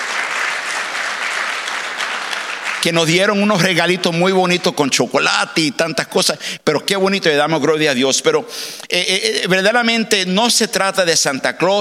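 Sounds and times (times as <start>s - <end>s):
church congregation applause for a youth ministry: 0.0s - 4.6s
speech: 2.8s - 11.8s.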